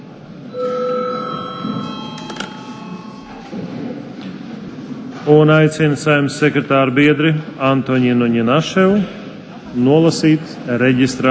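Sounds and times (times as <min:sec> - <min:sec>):
low murmur of noise: 0:00.0 - 0:11.2
parliament session bell ringing: 0:00.5 - 0:03.8
speech: 0:05.3 - 0:11.2.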